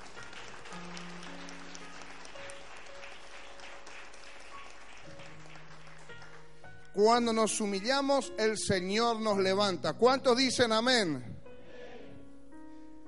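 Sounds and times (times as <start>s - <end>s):
audience applause: 0.0s - 6.6s
speech: 7.0s - 11.3s.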